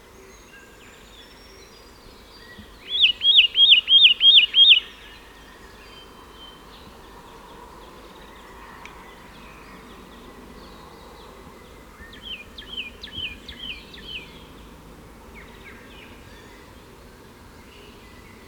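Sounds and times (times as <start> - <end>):
Satin flycatcher Myiagra cyanoleuca calls: 2.9 - 5.1.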